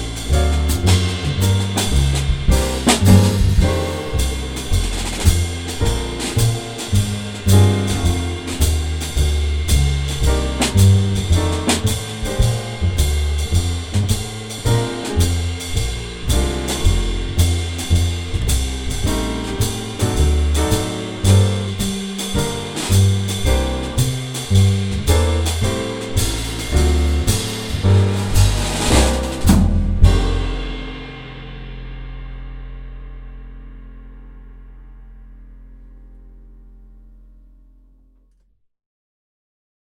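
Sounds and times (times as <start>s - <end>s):
blues playalong in F: 0.0s - 31.9s.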